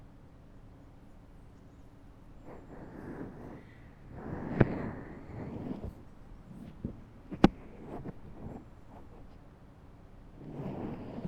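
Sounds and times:
left ear massage rubbing: 0:02.4 - 0:09.4, 0:10.4 - 0:11.2.

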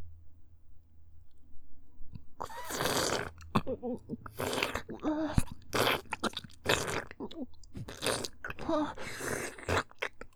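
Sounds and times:
sucking sounds: 0:02.4 - 0:10.2.

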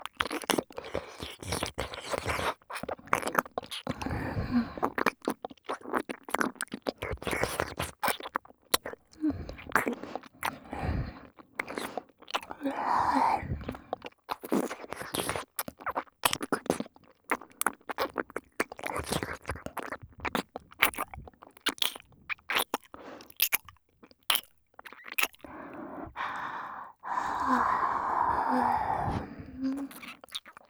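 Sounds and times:
ear licking in the left ear: 0:00.1 - 0:30.6
breathy sighs in the left ear: 0:25.4 - 0:30.0.

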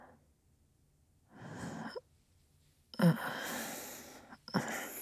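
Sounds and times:
sleep breathing: 0:01.4 - 0:02.0, 0:03.0 - 0:05.0.

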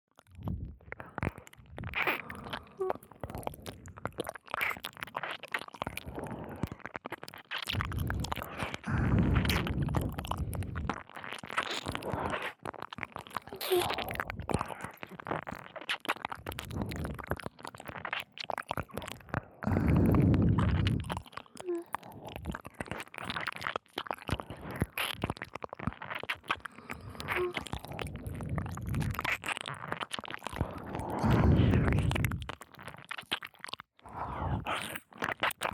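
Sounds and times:
ear licking sounds loop: 0:00.2 - 0:35.7.

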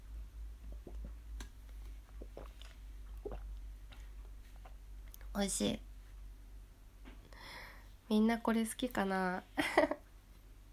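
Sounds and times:
quiet steady hum: 0:00.0 - 0:10.7
person gulping a beverage: 0:00.6 - 0:05.3
faint swallowing: 0:02.1 - 0:04.8
speech: 0:05.4 - 0:05.9, 0:08.1 - 0:09.9.

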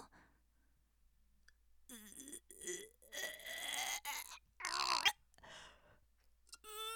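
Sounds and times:
person vomiting: 0:01.9 - 0:05.1.

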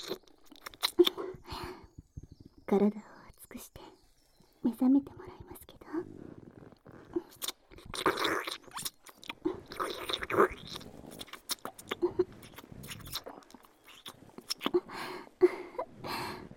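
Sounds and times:
wet mouth noises of deep kissing in an intimate roleplay: 0:00.0 - 0:01.4, 0:06.4 - 0:15.0
speech: 0:02.7 - 0:03.7, 0:04.7 - 0:05.2.

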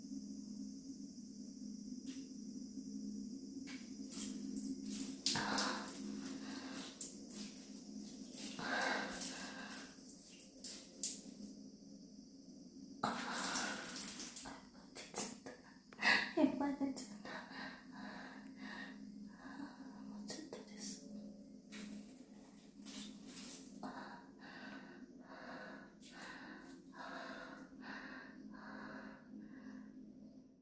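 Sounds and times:
insects chirping: 0:00.0 - 0:30.6
person urinating in a bathroom: 0:04.1 - 0:11.5, 0:13.0 - 0:15.4, 0:21.7 - 0:23.8.

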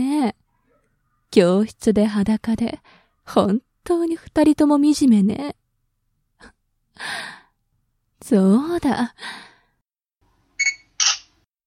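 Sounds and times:
speech: 0:00.0 - 0:00.4, 0:01.3 - 0:05.6, 0:06.4 - 0:07.4, 0:08.3 - 0:09.5
camera shutter clicks in a classroom: 0:11.0 - 0:11.3.

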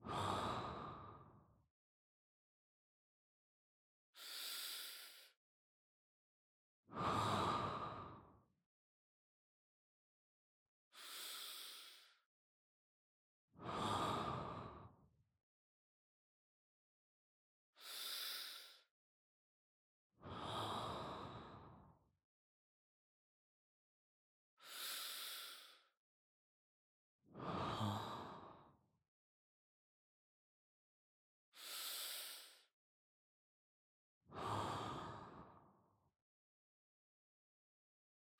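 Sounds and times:
person breathing in sleep: 0:00.1 - 0:01.3, 0:04.2 - 0:05.4, 0:06.9 - 0:08.3, 0:11.0 - 0:12.2, 0:13.6 - 0:14.9, 0:17.8 - 0:18.9, 0:20.2 - 0:21.8, 0:24.6 - 0:25.9, 0:27.4 - 0:28.7, 0:31.6 - 0:32.7, 0:34.4 - 0:35.7.

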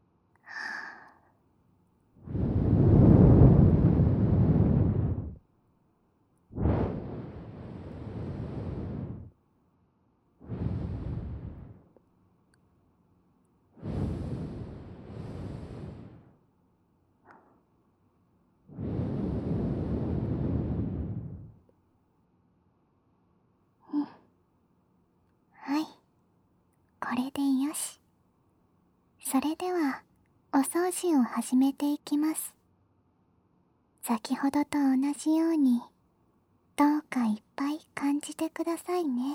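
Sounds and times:
warm breath blown into the ear: 0:02.2 - 0:05.4, 0:06.6 - 0:09.3, 0:10.4 - 0:11.9, 0:13.8 - 0:16.4, 0:18.7 - 0:21.6
speech: 0:27.1 - 0:28.0, 0:29.3 - 0:32.6, 0:34.0 - 0:35.9, 0:36.8 - 0:39.3.

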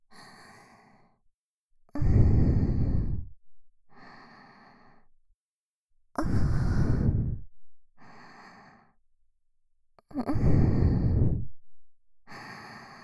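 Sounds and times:
sweet breathing loop: 0:00.1 - 0:01.2, 0:02.0 - 0:05.1, 0:06.2 - 0:09.0, 0:10.2 - 0:13.0.

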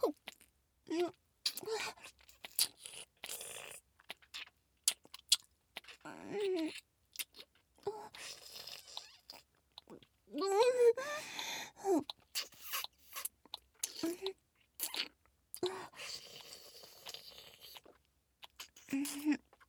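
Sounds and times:
wet mouth sounds of a vampire role-play biting and drinking blood: 0:00.1 - 0:10.2, 0:12.0 - 0:19.6
breathy gasps: 0:11.0 - 0:11.8.

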